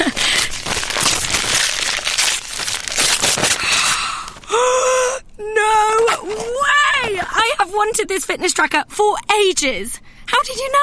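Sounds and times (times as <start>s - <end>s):
wrapping paper crinkling and tearing while unwrapping a gift: 0.0s - 4.7s, 6.0s - 7.4s
speech: 8.0s - 10.8s.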